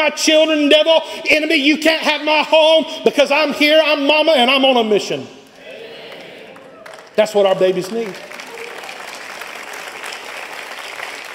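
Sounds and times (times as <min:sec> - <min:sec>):
speech: 0:00.0 - 0:05.4, 0:07.2 - 0:08.3
church congregation applause during a sermon: 0:06.0 - 0:11.3.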